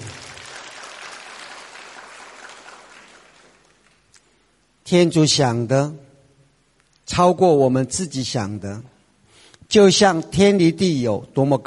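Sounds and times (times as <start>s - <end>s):
audience applause: 0.0s - 3.8s
speech: 4.9s - 6.0s, 7.1s - 8.9s, 9.7s - 11.6s.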